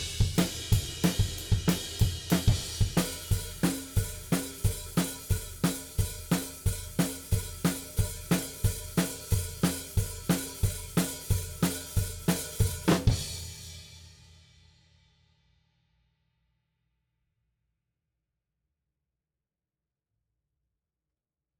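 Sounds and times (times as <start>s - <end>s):
drums: 0.0s - 15.4s.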